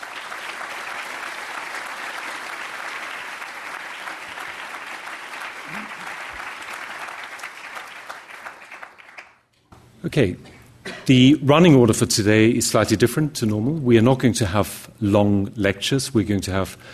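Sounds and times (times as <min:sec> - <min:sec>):
audience applause: 0:00.0 - 0:09.4
speech: 0:10.0 - 0:16.9.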